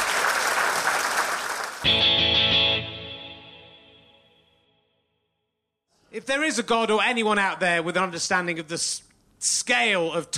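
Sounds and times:
audience applause: 0.0s - 2.0s
speech: 6.2s - 10.3s.

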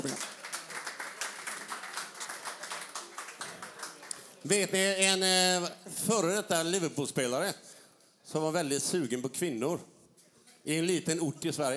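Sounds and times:
clapping: 0.0s - 4.3s
speech: 4.4s - 7.6s, 8.3s - 9.9s, 10.6s - 11.7s.

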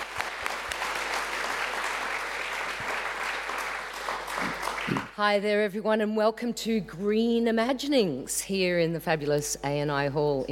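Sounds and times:
audience applauding at a festival session in a hall: 0.0s - 5.1s
speech: 5.2s - 10.5s.

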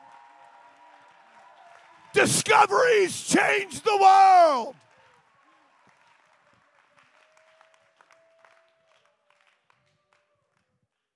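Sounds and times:
audience clapping: 0.0s - 10.2s
faint murmur of voices: 2.2s - 4.7s
speech: 2.2s - 4.8s.

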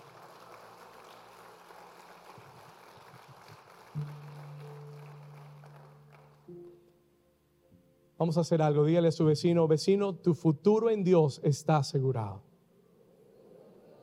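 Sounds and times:
loud applause from audience: 0.0s - 6.5s
speech: 8.2s - 12.5s.

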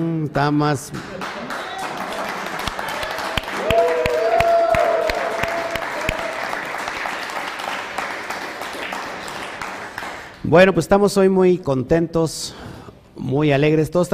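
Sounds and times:
speech: 0.0s - 1.1s, 10.5s - 14.1s
audience applause: 1.1s - 10.4s
audience cheers and whoops: 1.5s - 6.7s.

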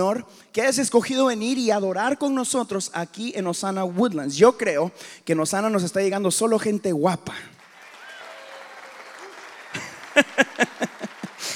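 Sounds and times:
speech: 0.0s - 7.6s
awkward audience applause: 7.6s - 11.5s
laughter: 9.2s - 11.5s.

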